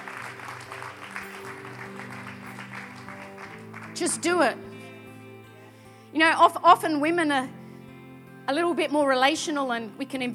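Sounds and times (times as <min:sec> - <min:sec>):
crowd applause: 0:00.0 - 0:05.6
speech: 0:04.0 - 0:04.7, 0:06.1 - 0:07.6, 0:08.5 - 0:10.3.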